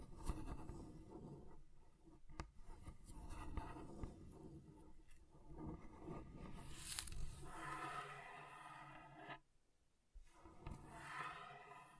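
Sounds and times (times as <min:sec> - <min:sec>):
scratching across a table surface: 0:00.0 - 0:09.4, 0:10.3 - 0:11.9.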